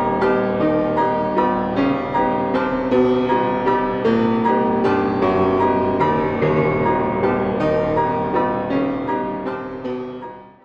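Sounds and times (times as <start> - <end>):
microwaltz: 0.0 - 10.6.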